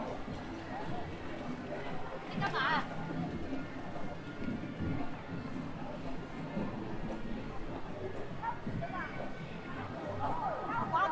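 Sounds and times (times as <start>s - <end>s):
crowd murmur at Hongyadong in Chongqing: 0.0s - 11.1s.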